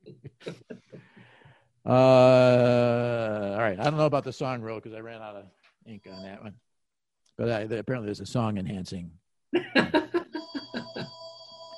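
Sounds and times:
laughter: 0.0s - 1.2s, 9.6s - 11.1s
speech: 1.9s - 6.7s, 7.4s - 10.1s
phone ringing with electronic trill: 10.4s - 11.7s.

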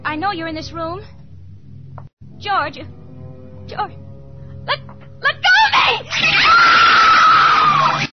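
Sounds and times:
speech: 0.1s - 1.2s, 2.4s - 3.0s, 3.7s - 4.0s, 4.7s - 6.8s
woman screaming: 4.7s - 8.0s.

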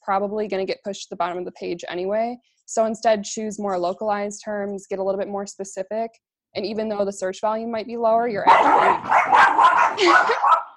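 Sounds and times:
speech: 0.0s - 10.6s
dog barking: 8.4s - 10.7s
dog whimpering yips: 9.8s - 10.6s.

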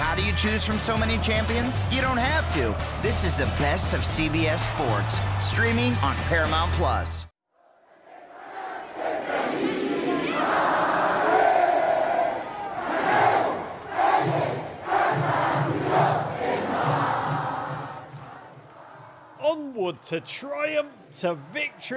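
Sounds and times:
speech: 0.2s - 7.3s, 20.1s - 21.9s
football fans singing their club hymn in the streets: 7.8s - 19.4s.

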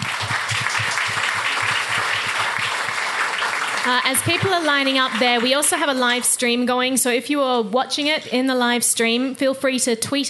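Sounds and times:
audience applause: 0.0s - 6.4s
speech: 3.9s - 10.2s.

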